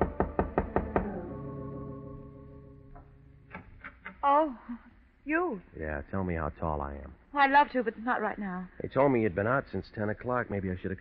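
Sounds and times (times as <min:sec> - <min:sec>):
firm knocking on a door: 0:00.0 - 0:01.2
speech: 0:04.2 - 0:10.9.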